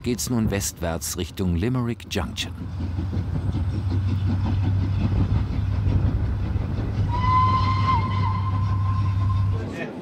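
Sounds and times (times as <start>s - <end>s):
speech: 0.0s - 7.7s
steam train chugging: 0.2s - 9.8s
steam train whistle: 7.0s - 9.7s.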